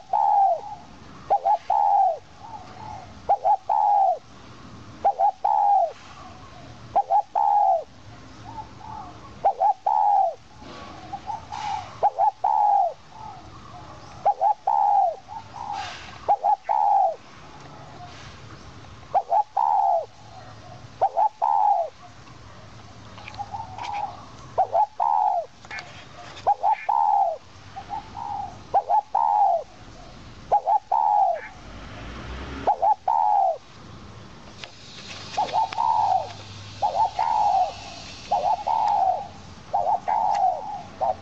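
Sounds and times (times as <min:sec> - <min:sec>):
owl call: 0:00.0 - 0:04.2, 0:05.0 - 0:07.9, 0:08.5 - 0:10.4, 0:11.1 - 0:17.2, 0:19.1 - 0:22.0, 0:23.4 - 0:25.5, 0:26.4 - 0:29.8, 0:30.5 - 0:31.6, 0:32.6 - 0:33.6, 0:35.2 - 0:41.2.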